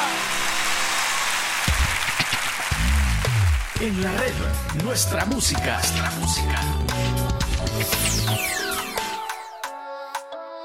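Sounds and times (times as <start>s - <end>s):
applause: 0.0s - 4.7s
speech: 3.8s - 8.9s.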